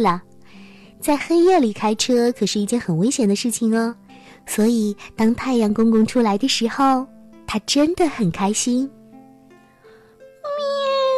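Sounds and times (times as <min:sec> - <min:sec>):
speech: 0:00.0 - 0:00.3, 0:01.0 - 0:09.0
cat meowing: 0:10.4 - 0:11.1.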